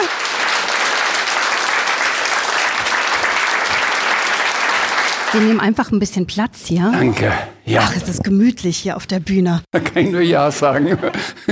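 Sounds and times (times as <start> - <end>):
thunderous applause from audience: 0.0 - 5.6
speech: 5.3 - 11.5
laughter: 9.7 - 11.5.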